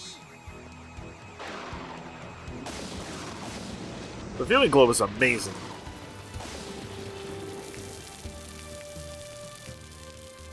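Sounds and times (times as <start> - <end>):
speech: 4.4 - 5.7
rain falling: 4.4 - 10.5.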